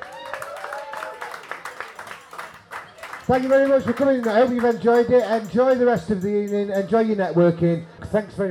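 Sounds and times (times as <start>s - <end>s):
people cheering and whooping: 0.0s - 3.8s
crowd applauding: 0.0s - 5.5s
speech: 3.3s - 8.5s.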